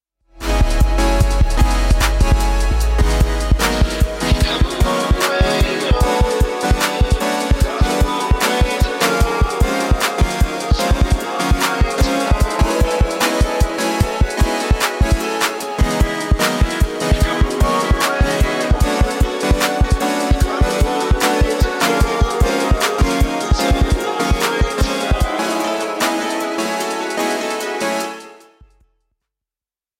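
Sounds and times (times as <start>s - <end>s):
drum machine: 0.4s - 28.0s.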